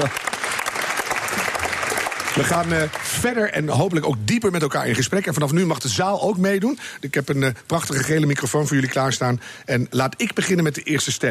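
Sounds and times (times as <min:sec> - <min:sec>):
speech: 0:00.0 - 0:00.3, 0:02.4 - 0:11.3
audience applause: 0:00.0 - 0:03.8.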